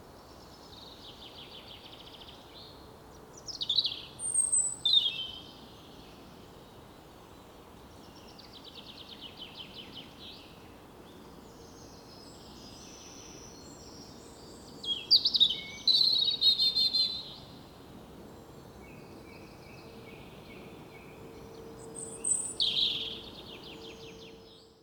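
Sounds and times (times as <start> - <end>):
low steady background hiss: 0.0 - 24.8
European robin song: 3.4 - 6.2, 8.0 - 17.6, 18.4 - 24.8.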